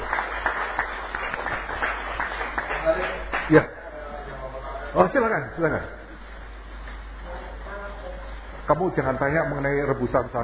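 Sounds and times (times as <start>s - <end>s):
audience applause: 0.0s - 3.8s
speech: 2.8s - 3.8s, 5.0s - 6.0s, 8.7s - 10.4s.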